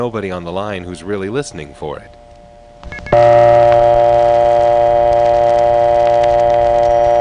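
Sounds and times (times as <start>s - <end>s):
speech: 0.0s - 2.2s
1970s Bell System prepay coin phone dial tone with beeps: 2.9s - 7.1s.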